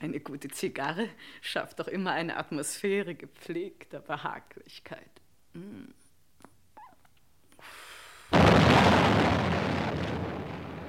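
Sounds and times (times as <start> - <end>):
speech: 0.0 - 6.0
explosion bang: 8.3 - 10.8.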